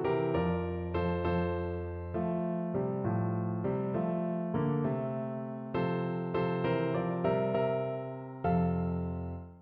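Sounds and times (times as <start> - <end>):
piano: 0.0 - 9.6.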